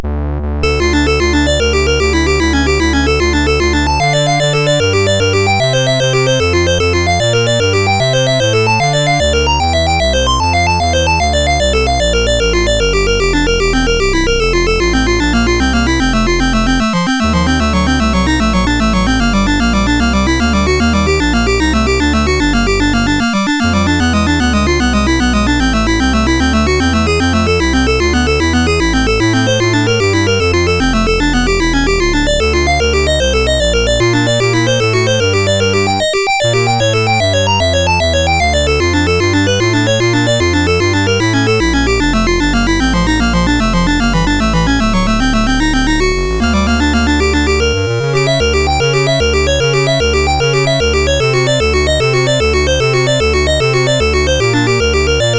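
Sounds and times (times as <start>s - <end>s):
prelude in D major on MOS6581 sound chip: 0.0s - 55.3s.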